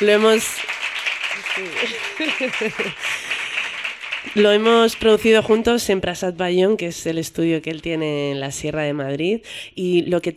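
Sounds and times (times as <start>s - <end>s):
speech: 0.0s - 0.8s, 1.6s - 3.3s, 4.2s - 10.3s
audience applause for the musicians: 0.0s - 5.6s
laughter: 1.4s - 3.7s.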